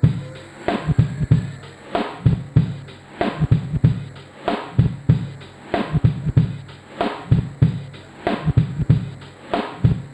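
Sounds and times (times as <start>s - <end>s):
Yamaha DTXpress drum machine loop: 0.0s - 10.1s.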